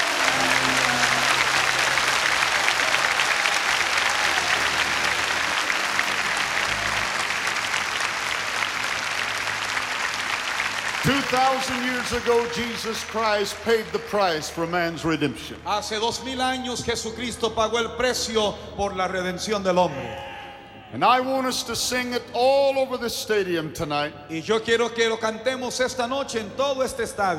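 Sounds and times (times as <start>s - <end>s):
large stadium crowd applauding: 0.0s - 15.4s
speech: 11.3s - 20.3s, 20.9s - 27.3s.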